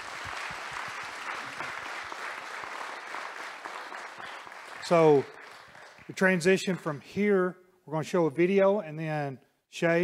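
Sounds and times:
audience applause: 0.0s - 6.8s
speech: 4.9s - 5.4s, 6.1s - 10.0s.

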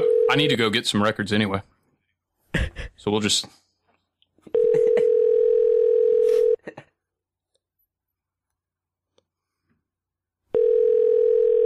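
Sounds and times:
speech: 0.3s - 1.7s, 3.0s - 3.6s
laughter: 4.5s - 5.2s
telephone dial tone while calling: 4.6s - 6.6s, 10.5s - 11.6s.

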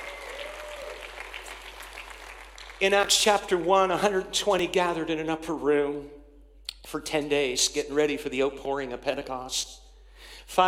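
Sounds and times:
audience clapping: 0.0s - 4.0s
speech: 2.8s - 6.2s, 6.9s - 9.8s, 10.5s - 10.6s.

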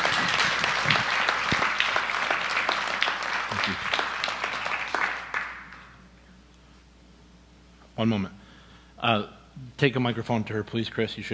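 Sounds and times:
audience clapping: 0.0s - 6.0s
speech: 8.0s - 8.4s, 9.0s - 11.3s.

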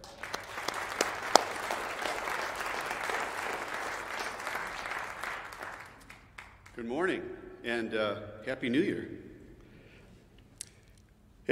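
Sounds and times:
audience clapping at a church gathering to welcome a speaker: 0.0s - 6.8s
speech: 6.8s - 9.3s.

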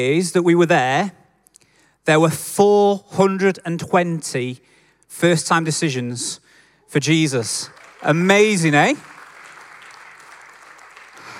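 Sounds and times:
speech: 0.0s - 1.2s, 2.0s - 9.1s
audience applause: 7.7s - 11.3s.

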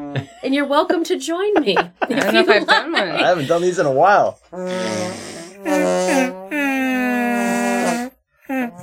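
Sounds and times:
speech: 0.1s - 5.2s
laughter: 1.5s - 4.1s
musical arm farts: 4.5s - 8.8s.

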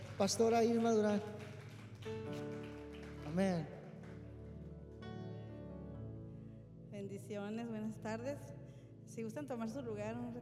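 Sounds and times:
audience applause: 0.0s - 4.8s
speech: 0.2s - 2.4s, 3.4s - 3.8s, 7.0s - 10.4s.

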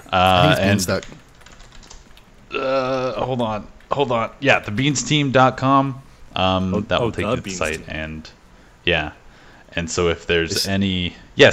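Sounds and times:
speech: 0.1s - 1.2s, 3.2s - 11.5s
computer keyboard clicks typing a web address: 1.0s - 2.4s.

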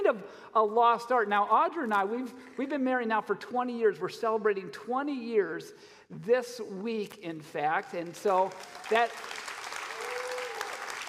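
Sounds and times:
speech: 0.1s - 9.4s
faint audience applause: 8.6s - 11.0s.

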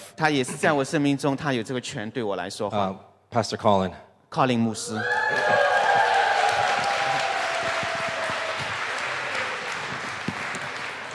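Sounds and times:
speech: 0.2s - 5.7s
audience applause: 5.0s - 11.1s.

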